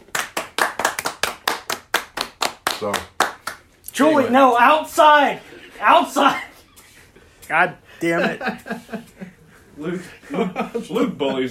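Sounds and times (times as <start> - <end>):
hands clapping: 0.0 - 3.8
speech: 2.8 - 3.2, 4.0 - 6.5, 7.5 - 9.2, 9.8 - 11.5
laughter: 8.0 - 11.5.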